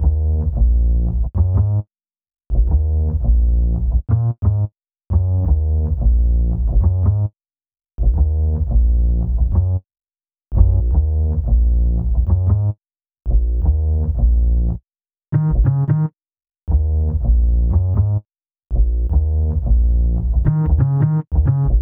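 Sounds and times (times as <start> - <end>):
hip-hop bass: 0.0 - 1.8, 2.5 - 7.3, 8.0 - 9.8, 10.5 - 12.7, 13.3 - 14.8, 15.4 - 16.1, 16.7 - 21.7.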